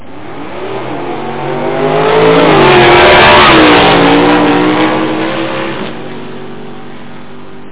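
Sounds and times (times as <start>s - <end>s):
drag racing vehicles: 0.0s - 7.6s.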